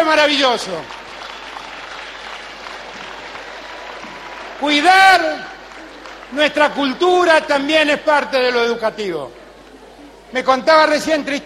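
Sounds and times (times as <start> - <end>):
audience applause: 0.0 - 8.0
speech: 0.1 - 1.0, 4.6 - 5.5, 6.3 - 9.4, 10.3 - 11.4.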